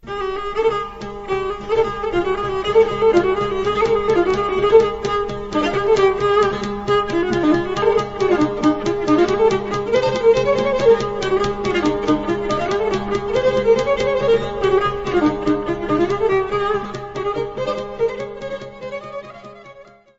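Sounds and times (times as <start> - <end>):
folk dance music from Greece: 0.0 - 19.9.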